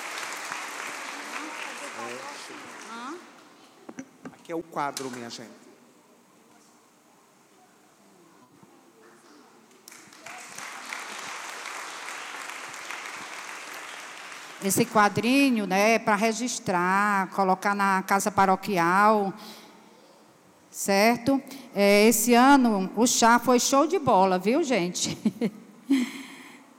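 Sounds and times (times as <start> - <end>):
audience applause: 0.0 - 3.3, 9.9 - 15.0
speech: 4.5 - 5.6, 14.6 - 19.6, 20.8 - 26.0.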